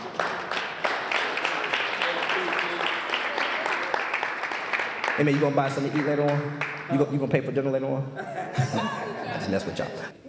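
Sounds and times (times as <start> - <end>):
audience hand clapping: 0.0 - 7.1
speech: 5.2 - 10.2
laughter: 8.1 - 10.2.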